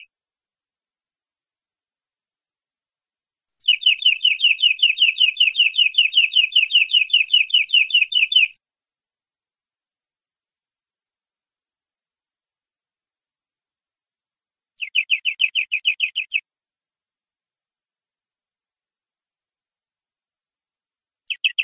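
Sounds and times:
canary singing: 3.6 - 8.6, 14.8 - 16.5, 21.3 - 21.6.

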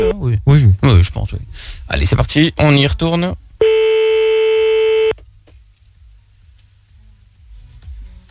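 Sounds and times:
speech: 0.0 - 3.4
telephone line ringing tone: 3.6 - 5.1.

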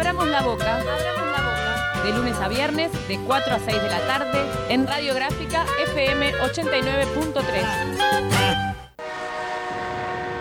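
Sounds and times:
speech: 0.1 - 1.2, 2.0 - 8.8
siren: 9.0 - 10.3.

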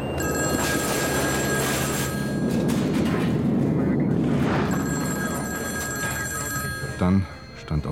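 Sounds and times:
ringing alarm tones: 0.0 - 7.9
airplane crash explosion roar: 2.3 - 5.6
speech: 7.0 - 7.9.

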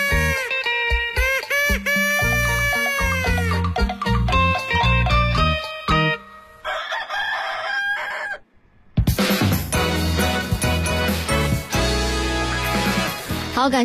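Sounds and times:
loud full-band music with heavy beats: 0.0 - 6.0, 9.0 - 13.5
rooster crowing: 6.6 - 8.7.

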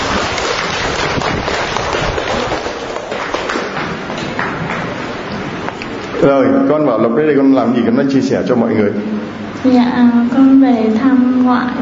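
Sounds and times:
audience applause: 0.0 - 5.3
speech: 6.2 - 11.8.

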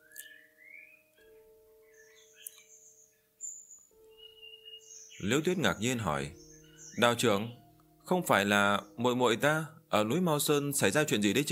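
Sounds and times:
caged pet birds chirping and whistling outside: 0.0 - 7.6
speech: 5.2 - 6.4, 7.0 - 11.5.

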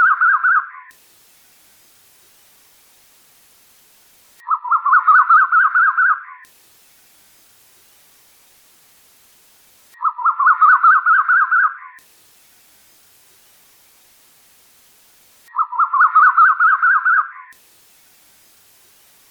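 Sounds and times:
bird chattering song: 0.0 - 0.9, 4.4 - 6.5, 10.0 - 12.0, 15.5 - 17.6.

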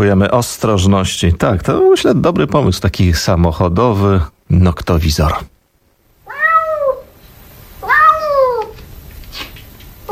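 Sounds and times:
speech: 0.0 - 5.5
cat meowing: 6.2 - 7.1, 7.8 - 8.8.

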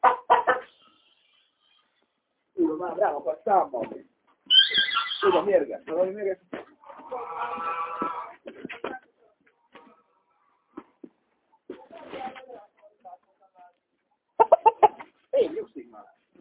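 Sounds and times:
rooster clucking: 0.0 - 0.9, 6.8 - 8.8, 14.4 - 15.2
speech: 2.8 - 4.1, 5.2 - 6.6.

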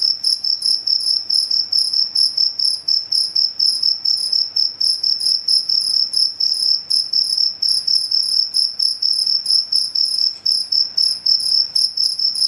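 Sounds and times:
cricket chirping: 0.0 - 12.4.

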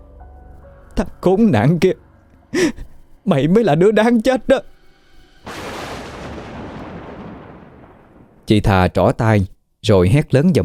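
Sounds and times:
speech: 1.0 - 4.7, 8.5 - 10.6
thunderclap rolling into a sustained rumble: 5.4 - 8.5.

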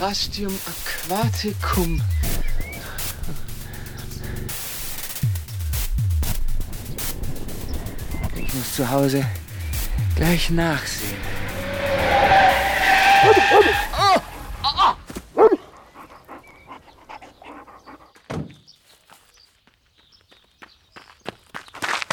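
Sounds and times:
speech: 0.0 - 2.4, 8.6 - 9.4, 10.2 - 11.5, 13.2 - 13.9
heavy low thud: 1.3 - 11.6
tires of recklessly driven car screeching: 10.6 - 15.1.

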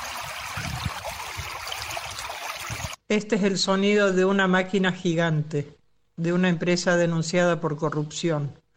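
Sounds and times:
Suspe river water flowing in Los Gigantes water reserve: 0.0 - 3.0
speech: 3.1 - 8.6.

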